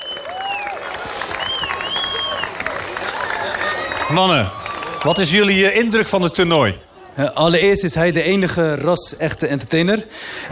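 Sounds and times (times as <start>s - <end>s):
audience applause: 0.0s - 6.7s
speech: 4.1s - 10.5s.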